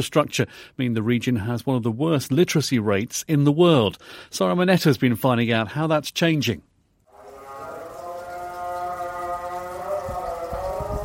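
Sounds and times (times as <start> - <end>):
speech: 0.0 - 6.7
distant Islamic call to prayer: 7.1 - 11.0.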